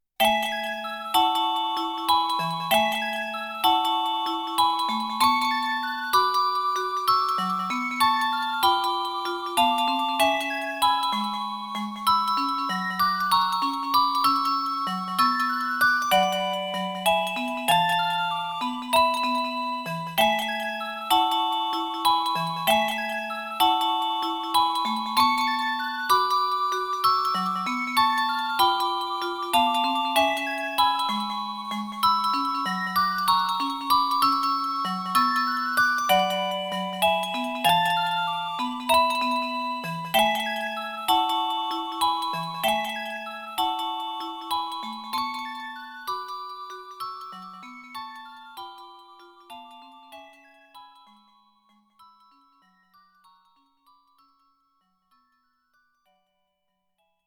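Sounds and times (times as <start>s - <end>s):
music box melody: 0.2s - 57.2s.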